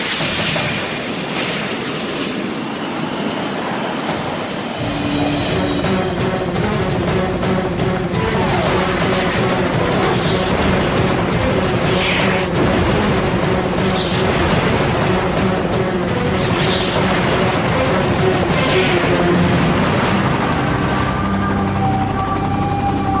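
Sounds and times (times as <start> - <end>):
MiG-29 fighter jets firing on a helicopter: 0.0 - 21.5
rescue helicopter engine roar with whining tones: 0.0 - 23.1
brief rising sweeps: 4.8 - 6.3.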